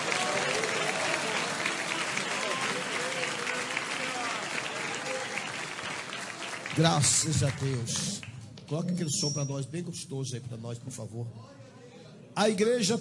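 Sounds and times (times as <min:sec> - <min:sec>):
audience applauding: 0:00.0 - 0:08.4
speech: 0:06.8 - 0:11.6, 0:12.4 - 0:12.9.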